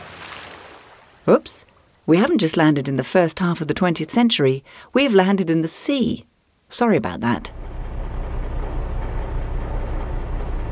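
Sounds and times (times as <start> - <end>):
speech: 1.3 - 7.7
submarine engine running on the surface: 7.4 - 10.6.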